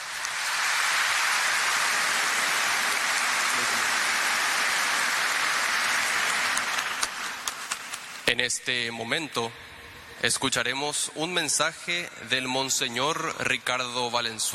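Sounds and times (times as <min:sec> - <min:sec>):
warm applause: 0:00.0 - 0:08.3
speech: 0:08.4 - 0:14.5.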